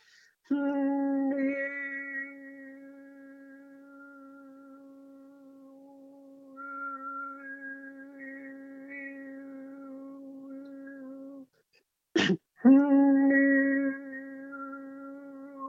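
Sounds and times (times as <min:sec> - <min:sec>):
overtone singing: 0:00.5 - 0:11.5, 0:12.6 - 0:15.6.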